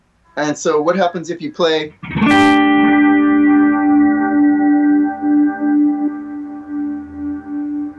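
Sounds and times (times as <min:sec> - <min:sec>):
speech: 0:00.4 - 0:02.5
electric guitar volume swell through delay with cranked feedback and compressor: 0:02.0 - 0:07.9.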